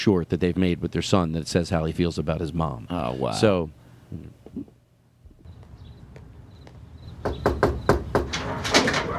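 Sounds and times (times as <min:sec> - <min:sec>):
speech: 0:00.0 - 0:04.7
knocking on a front door: 0:07.1 - 0:09.0.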